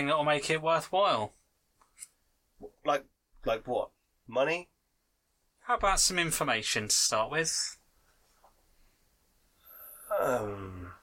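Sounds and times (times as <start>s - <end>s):
speech: 0.0s - 1.4s, 2.0s - 4.7s, 5.7s - 7.8s, 10.1s - 11.0s
man groaning: 9.7s - 11.0s.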